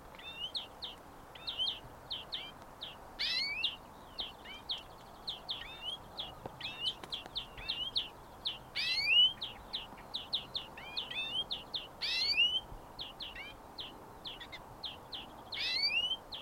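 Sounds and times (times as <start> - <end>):
European Greenfinch Chloris chloris singing: 0.1 - 16.3.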